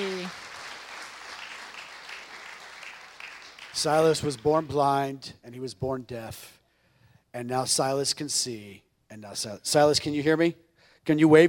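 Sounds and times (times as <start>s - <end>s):
audience applauding: 0.0s - 4.7s
speech: 3.8s - 6.6s, 7.3s - 11.4s.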